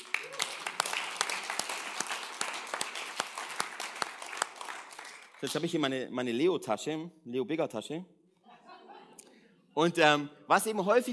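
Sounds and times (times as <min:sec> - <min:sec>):
audience applause: 0:00.0 - 0:05.8
speech: 0:05.4 - 0:08.2, 0:09.8 - 0:11.1
laughter: 0:08.4 - 0:09.4.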